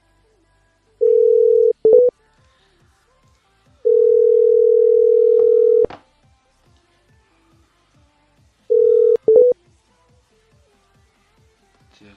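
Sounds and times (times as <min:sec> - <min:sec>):
telephone dial tone while dialing a number: 0:01.0 - 0:02.1, 0:03.9 - 0:05.9, 0:08.7 - 0:09.6
telephone keypad beeps: 0:01.0 - 0:02.1, 0:03.9 - 0:05.9, 0:08.7 - 0:09.6.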